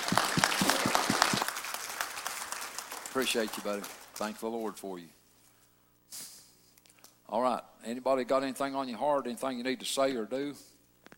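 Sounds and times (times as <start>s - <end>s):
audience clapping: 0.0s - 4.7s
speech: 3.2s - 5.2s, 7.3s - 10.7s.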